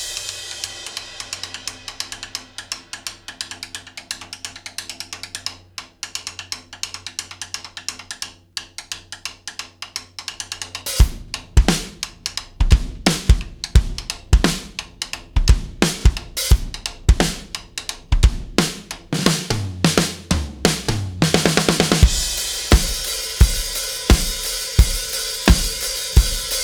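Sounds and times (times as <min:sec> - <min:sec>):
live drums: 0:00.0 - 0:02.6, 0:10.9 - 0:26.6.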